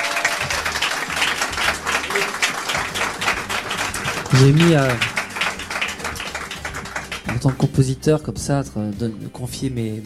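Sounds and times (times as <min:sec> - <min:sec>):
audience applause: 0:00.0 - 0:07.7
speech: 0:04.3 - 0:05.1, 0:07.4 - 0:10.0.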